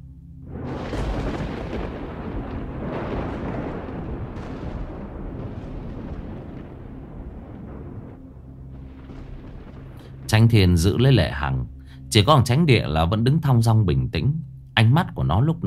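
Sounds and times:
deafening thunderclap from a lightning strike: 0.4 - 11.6
speech: 10.3 - 15.6.

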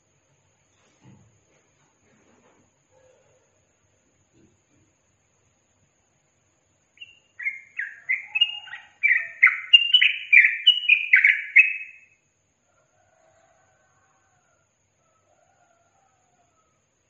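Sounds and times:
Yellow-vented bulbul song: 6.8 - 12.2.

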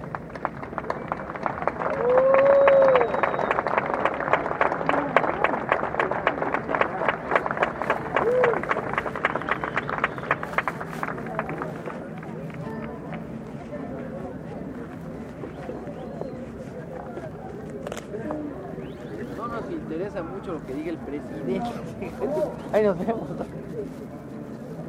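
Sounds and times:
audience applause at the closing of a Cervantino festival concert in San Cristóbal: 0.0 - 12.9
crowd noise: 0.0 - 24.8.

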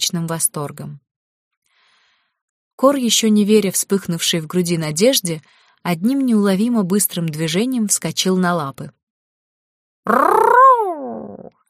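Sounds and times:
speech: 0.1 - 1.1, 2.8 - 9.0, 10.0 - 10.6
creature's deafening roar: 10.1 - 11.6.

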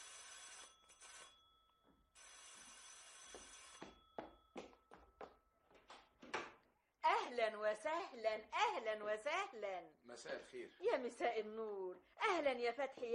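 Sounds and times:
doorbell ringing: 0.0 - 5.5
speech: 7.3 - 13.1.

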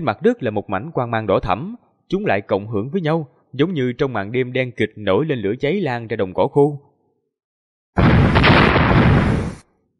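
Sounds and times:
speech: 0.0 - 6.9
rumbling explosions from underground: 8.0 - 9.7.

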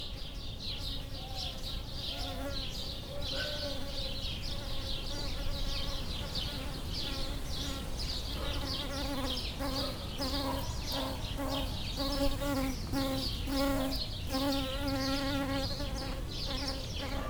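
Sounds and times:
birds chirping: 0.4 - 17.2
bumblebee buzzing: 5.1 - 17.2.

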